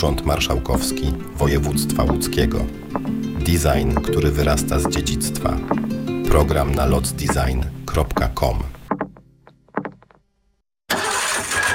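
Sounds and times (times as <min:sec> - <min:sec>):
speech: 0:00.0 - 0:02.8, 0:03.4 - 0:08.7
car engine cranking and starting: 0:10.9 - 0:11.7.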